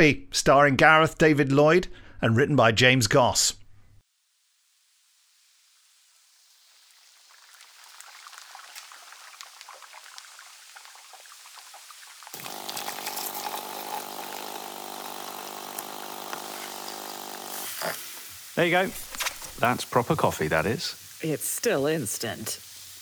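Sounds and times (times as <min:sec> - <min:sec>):
speech: 0:00.0 - 0:03.6, 0:18.6 - 0:22.7
Italian espresso barista machine running: 0:12.4 - 0:21.0.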